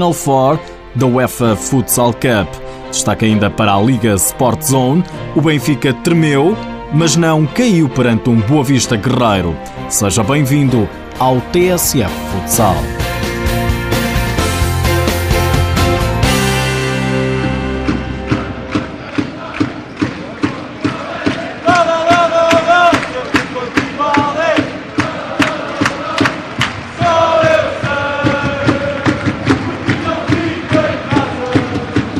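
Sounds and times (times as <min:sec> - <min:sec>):
speech: 0:00.0 - 0:13.6
rhythmic drum-like thumps: 0:13.0 - 0:32.1
crowd at a Sporting UEFA Futsal Cup match in Odivelas pavilion roaring: 0:18.1 - 0:32.1.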